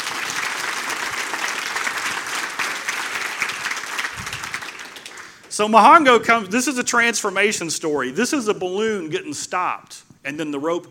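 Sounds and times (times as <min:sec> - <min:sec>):
audience applause: 0:00.0 - 0:05.5
speech: 0:05.6 - 0:10.8.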